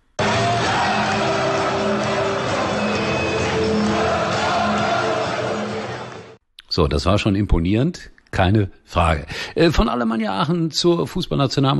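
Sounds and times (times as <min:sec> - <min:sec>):
stadium crowd of 25,000 cheering for Alemannia Aachen: 0:00.2 - 0:06.4
speech: 0:06.8 - 0:11.7.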